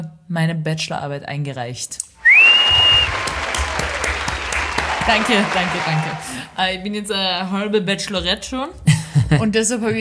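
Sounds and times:
speech: 0:00.0 - 0:02.8, 0:05.1 - 0:09.9
high steady whistle: 0:02.2 - 0:03.3
crowd applause sound effect: 0:02.2 - 0:06.6.

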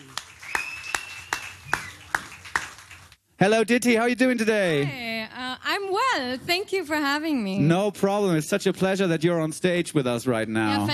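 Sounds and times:
audience clapping to welcome a guest onto a stage: 0:00.0 - 0:03.2
speech: 0:03.4 - 0:05.1, 0:05.8 - 0:10.9.

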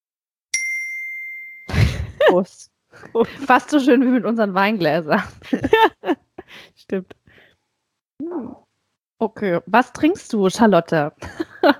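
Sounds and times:
glockenspiel note high C: 0:00.6 - 0:01.7
speech: 0:02.3 - 0:07.2, 0:08.2 - 0:08.6, 0:09.2 - 0:11.7.

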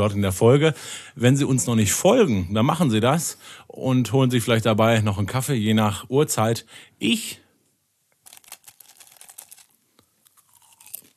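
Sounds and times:
speech: 0:00.0 - 0:07.4
popcorn being eaten: 0:08.2 - 0:11.1.

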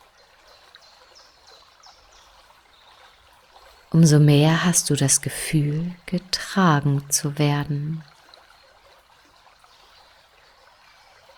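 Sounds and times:
speech: 0:03.9 - 0:08.1
gently splashing, flowing water of a stream: 0:04.0 - 0:08.1.

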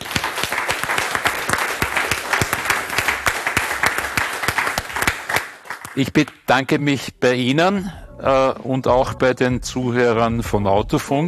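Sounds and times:
thunderous audience applause: 0:00.0 - 0:06.3
speech: 0:06.0 - 0:11.2.

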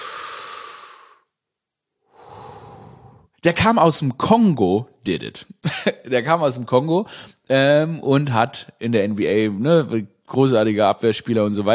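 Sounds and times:
deep breath in: 0:00.0 - 0:01.3, 0:02.0 - 0:03.4, 0:07.1 - 0:07.4
speech: 0:03.4 - 0:11.7.

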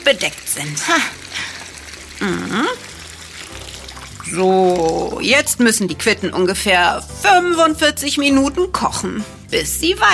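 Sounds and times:
water pouring into a pot: 0:00.0 - 0:05.9
speech: 0:00.1 - 0:01.5, 0:02.2 - 0:02.9, 0:04.3 - 0:10.1.

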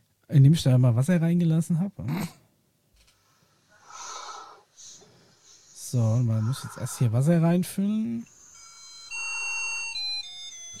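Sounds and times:
speech: 0:00.3 - 0:02.4, 0:05.9 - 0:08.4
one-tone sound chip melody loop: 0:08.2 - 0:10.7.

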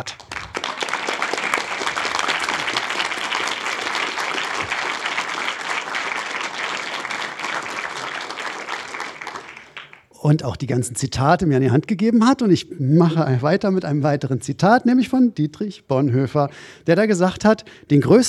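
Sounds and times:
speech: 0:00.0 - 0:00.2, 0:10.2 - 0:18.2
audience applause: 0:00.0 - 0:10.1.

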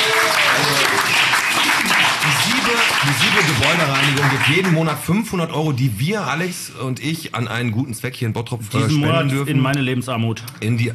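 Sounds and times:
audience applause at a charity sponsorship segment in Bottrop: 0:00.0 - 0:05.1
speech: 0:03.4 - 0:10.9.

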